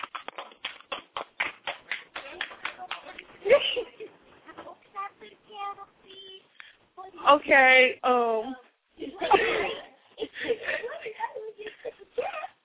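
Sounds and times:
audience clapping: 0.0s - 3.6s
laughter: 3.4s - 4.2s, 9.0s - 12.5s
speech: 7.2s - 8.6s.

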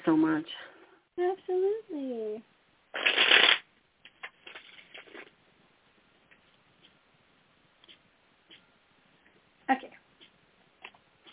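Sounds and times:
speech: 0.1s - 3.6s
playing cards being shuffled: 3.0s - 5.3s.

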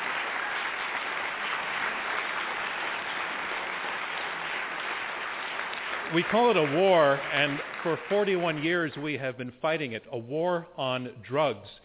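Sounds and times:
audience applause: 0.0s - 9.0s
speech: 6.1s - 11.8s.

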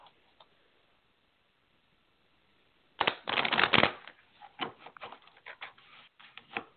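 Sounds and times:
cards flicking and snapping as pulled from the deck: 3.0s - 5.2s
playing cards being shuffled: 3.0s - 6.7s.

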